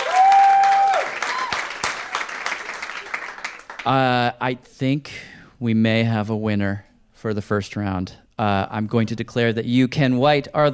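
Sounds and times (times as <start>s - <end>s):
whistle-like cheer: 0.0s - 1.7s
audience applause: 0.0s - 4.0s
speech: 3.8s - 10.7s.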